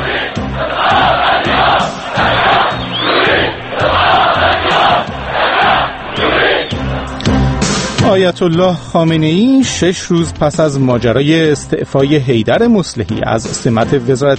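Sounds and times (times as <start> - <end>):
large crowd of protesters chanting slogans at funeral: 0.0 - 7.9
speech: 8.2 - 14.3.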